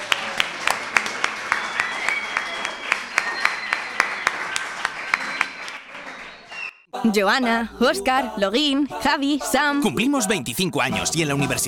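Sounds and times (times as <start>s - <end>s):
small audience applauding: 0.0s - 6.8s
speech: 7.0s - 11.6s.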